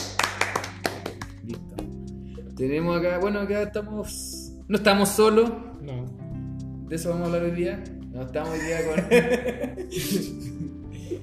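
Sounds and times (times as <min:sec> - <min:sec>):
hand claps: 0:00.0 - 0:02.0
speech: 0:02.6 - 0:06.2, 0:06.9 - 0:11.2
laughter: 0:08.5 - 0:11.2.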